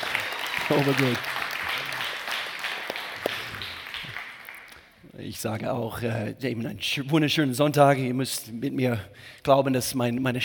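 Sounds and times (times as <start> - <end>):
audience applause: 0.0 - 5.0
speech: 0.7 - 1.3, 5.2 - 10.4.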